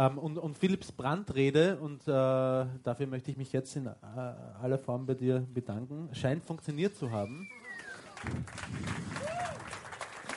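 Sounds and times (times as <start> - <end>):
speech: 0.0 - 7.6, 8.2 - 9.8
applause: 7.7 - 10.3
person whooping: 9.1 - 9.7.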